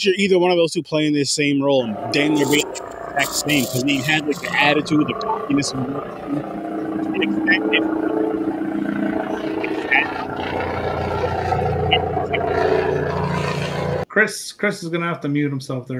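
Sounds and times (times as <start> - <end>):
speech: 0.0 - 6.6, 7.2 - 8.9, 14.2 - 15.9
indistinct voices: 1.4 - 14.8
helicopter-like low rumbling engine noise on a call line: 1.8 - 14.1.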